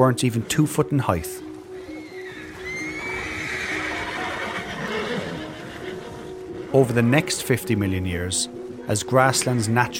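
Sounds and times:
speech: 0:00.0 - 0:01.5, 0:06.7 - 0:09.9
horse neighing: 0:01.9 - 0:06.4.

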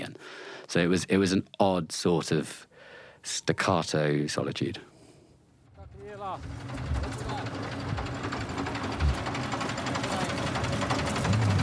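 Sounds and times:
speech: 0:00.7 - 0:04.9, 0:06.3 - 0:06.8
truck pulling over: 0:05.9 - 0:11.6.

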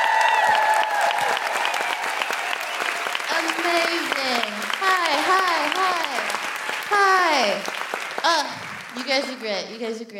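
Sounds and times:
bright whoops from a live audience at a feminist comedy show: 0:00.0 - 0:03.3
live audience clapping at a feminist comedy show: 0:00.0 - 0:10.0
speech: 0:07.4 - 0:10.1.

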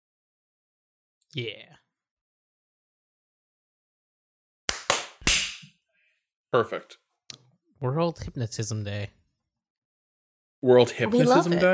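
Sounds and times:
speech: 0:01.3 - 0:01.8, 0:06.5 - 0:07.0, 0:07.8 - 0:09.2, 0:10.6 - 0:11.7
synchronised hand claps: 0:04.7 - 0:05.7.

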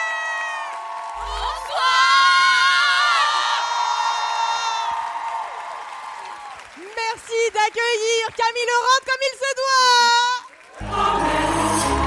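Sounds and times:
crowd ovation cheering and applause at a live event: 0:00.0 - 0:08.8, 0:09.8 - 0:12.0
speech: 0:07.7 - 0:10.4.

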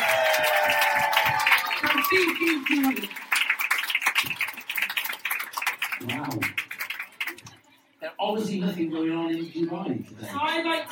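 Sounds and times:
cheering voices and whoops: 0:00.0 - 0:02.7
audience round of applause: 0:00.0 - 0:07.5
speech: 0:02.1 - 0:03.2, 0:08.2 - 0:10.9.

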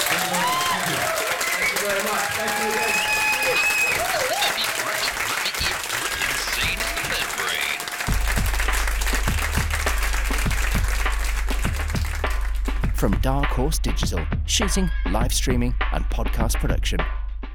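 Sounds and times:
live audience applause: 0:00.0 - 0:12.8
speech: 0:13.3 - 0:17.2.

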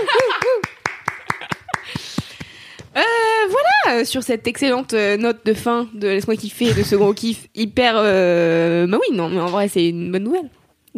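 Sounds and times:
person clapping into a microphone: 0:00.1 - 0:02.9
speech: 0:03.9 - 0:10.9.

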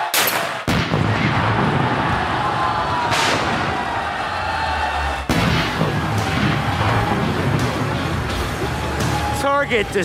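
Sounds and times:
gunshots fired at a Prius car: 0:00.1 - 0:02.4, 0:03.0 - 0:04.2, 0:05.3 - 0:09.1
noisy background: 0:00.3 - 0:10.0.

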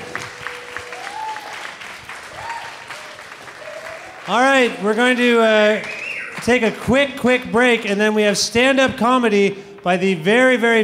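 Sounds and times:
crowd clapping: 0:00.0 - 0:08.0
speech: 0:04.3 - 0:10.8
faint whistle-like tones: 0:05.8 - 0:06.4.

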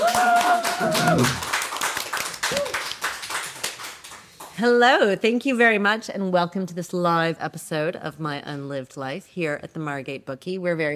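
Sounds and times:
audience applause at a live podcast recording at the Margate Bookie in Margate: 0:00.0 - 0:04.5
speech: 0:00.8 - 0:01.5, 0:04.6 - 0:10.9.

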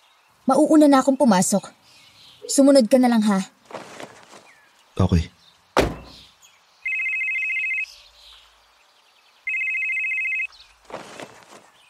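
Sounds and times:
speech: 0:00.5 - 0:01.8, 0:02.4 - 0:03.9, 0:05.0 - 0:05.4
rustling: 0:03.6 - 0:04.8, 0:10.6 - 0:11.8
sharp thump: 0:05.8 - 0:06.3
telephone ringing: 0:06.9 - 0:07.9, 0:09.5 - 0:10.5.

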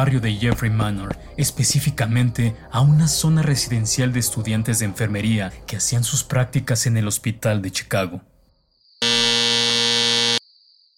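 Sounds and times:
speech: 0:00.0 - 0:08.3
doorbell buzzer: 0:09.0 - 0:10.4.

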